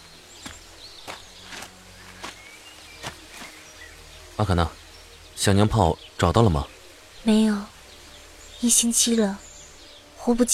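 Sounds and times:
footsteps of someone walking in: 0.4s - 3.6s
speech: 4.4s - 4.8s, 5.4s - 7.7s, 8.6s - 9.4s, 10.2s - 10.5s.

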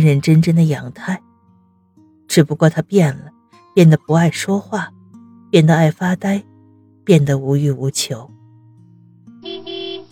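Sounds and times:
speech: 0.0s - 1.2s, 2.3s - 6.5s, 7.1s - 8.3s
Bentley horn honking: 9.4s - 10.1s.

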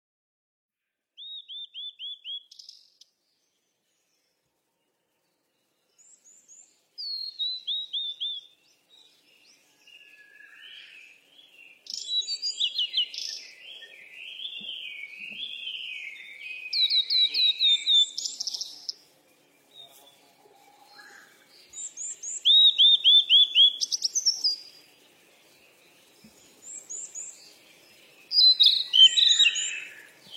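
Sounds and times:
bird whistling: 1.2s - 2.8s, 7.0s - 8.5s, 11.9s - 18.8s, 21.8s - 24.6s, 28.3s - 30.3s.

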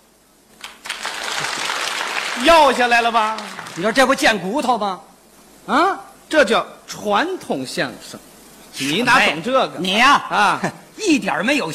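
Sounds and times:
audience applause: 0.6s - 4.0s
speech: 2.4s - 11.7s.

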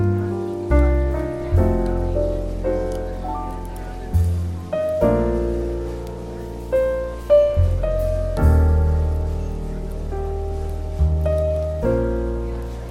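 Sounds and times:
café ambience: 0.0s - 12.9s
relaxed jazz with piano-like chords and bass: 0.0s - 12.9s
soft rain-like hiss: 0.0s - 12.9s.

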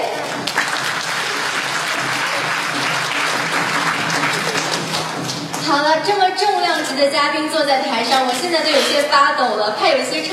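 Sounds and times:
audience applause: 0.2s - 5.7s
audience screaming: 0.4s - 5.2s
speech: 7.0s - 10.3s.

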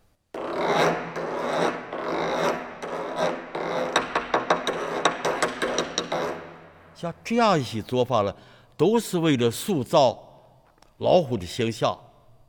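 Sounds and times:
drumstick scraping a big drum's head: 0.4s - 6.7s
speech: 7.0s - 10.2s, 11.0s - 12.0s.

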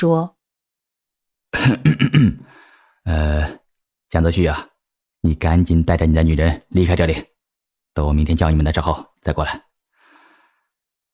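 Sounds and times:
speech: 0.0s - 0.4s, 1.5s - 7.3s, 8.0s - 9.7s
awkward coughing: 1.6s - 2.5s.

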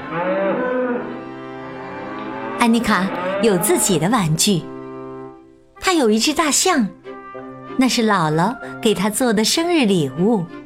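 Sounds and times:
dairy cow mooing: 0.0s - 5.3s
speech: 2.6s - 4.7s, 5.8s - 7.0s, 7.8s - 10.6s.

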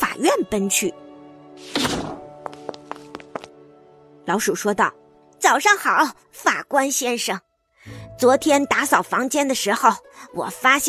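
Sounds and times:
speech: 0.3s - 2.1s, 4.3s - 10.8s
door slamming shut: 1.6s - 2.3s.

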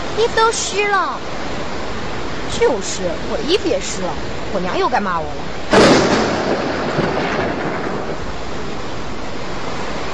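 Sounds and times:
rain falling in a sudden shower: 0.0s - 10.1s
speech: 0.2s - 1.5s, 2.6s - 6.6s.

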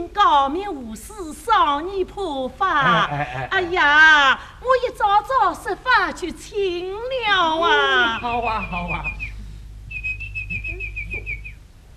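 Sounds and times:
steady low hum: 0.0s - 11.9s
speech: 0.1s - 9.2s
girl whistling an imitated bird call: 8.6s - 11.6s.

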